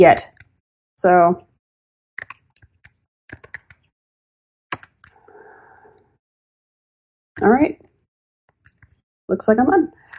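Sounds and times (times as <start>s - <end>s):
speech: 0.0s - 0.3s, 1.0s - 1.5s, 7.4s - 7.9s, 9.3s - 10.0s
loud typing on a computer keyboard: 2.2s - 3.9s, 4.7s - 6.1s, 7.4s - 9.0s.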